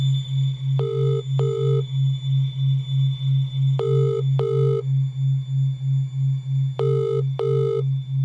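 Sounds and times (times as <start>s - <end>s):
low pulsing hum: 0.0s - 8.2s
phone ringback tone, call going unanswered: 0.8s - 1.8s, 3.8s - 4.8s, 6.8s - 7.8s.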